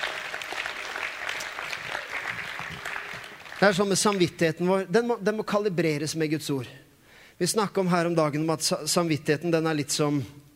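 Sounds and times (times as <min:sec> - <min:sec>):
audience clapping: 0:00.0 - 0:04.4
speech: 0:03.6 - 0:06.8, 0:07.4 - 0:10.4.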